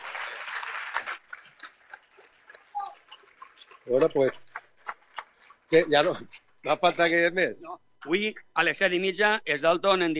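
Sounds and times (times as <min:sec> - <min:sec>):
small group clapping: 0:00.0 - 0:06.5
speech: 0:03.9 - 0:04.6, 0:05.7 - 0:10.1.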